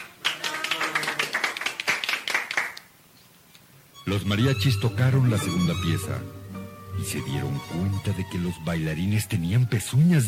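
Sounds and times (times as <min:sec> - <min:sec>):
applause: 0:00.0 - 0:02.9
speech: 0:04.1 - 0:06.4, 0:07.0 - 0:10.2.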